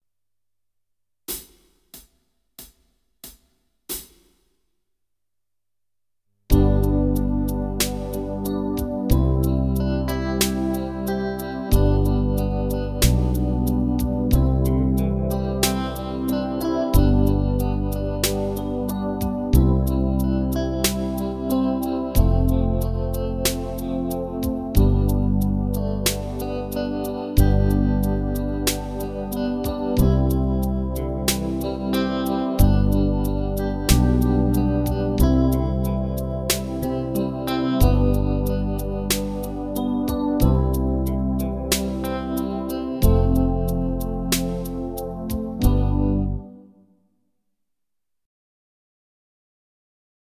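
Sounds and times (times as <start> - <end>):
keyboard backing track: 6.5 - 46.6.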